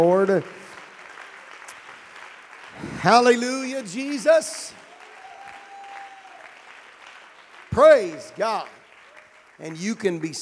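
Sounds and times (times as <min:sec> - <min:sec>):
speech: 0:00.0 - 0:00.6, 0:03.0 - 0:04.8, 0:07.8 - 0:08.8, 0:09.6 - 0:10.4
church audience clapping hands: 0:00.0 - 0:10.4.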